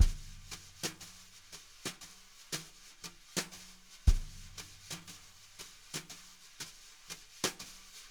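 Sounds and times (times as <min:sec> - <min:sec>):
jazz brush drum loop: 0:00.0 - 0:08.1.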